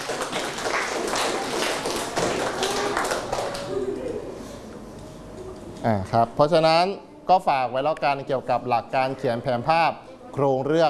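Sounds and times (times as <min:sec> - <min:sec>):
classroom students clapping: 0:00.0 - 0:03.8
speech: 0:05.8 - 0:10.8.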